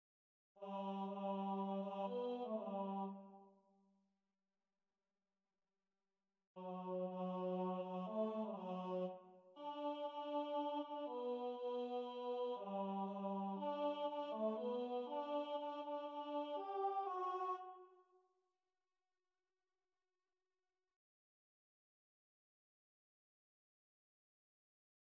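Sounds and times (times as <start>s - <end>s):
tenor choir singing: 0.6s - 3.3s, 6.6s - 17.7s.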